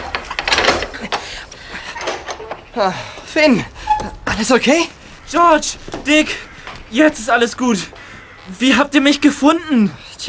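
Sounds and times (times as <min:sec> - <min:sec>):
metal door bolt sliding open: 0:00.0 - 0:04.8
speech: 0:02.8 - 0:03.8, 0:04.4 - 0:10.2.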